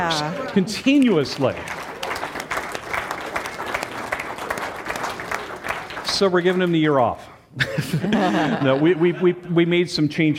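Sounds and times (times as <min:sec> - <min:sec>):
speech: 0:00.0 - 0:01.9, 0:06.2 - 0:10.3
audience clapping for a long-serving church elder: 0:00.0 - 0:07.3
laughter: 0:07.6 - 0:09.6.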